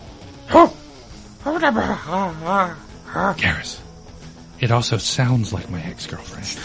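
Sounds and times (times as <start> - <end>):
human voice imitating squawking of small creatures: 1.4 - 3.3
speech: 1.6 - 3.8, 4.6 - 6.6.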